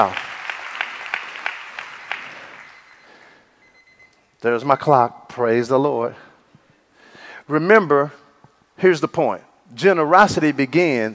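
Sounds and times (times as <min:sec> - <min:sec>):
speech: 0:00.0 - 0:00.2, 0:04.4 - 0:06.3, 0:07.5 - 0:08.2, 0:08.8 - 0:11.1
audience applause: 0:00.0 - 0:03.0.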